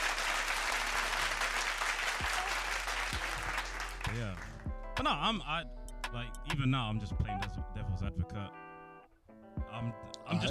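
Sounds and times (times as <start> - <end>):
round of applause: 0.0 - 4.6
speech: 4.4 - 8.6, 9.7 - 10.4.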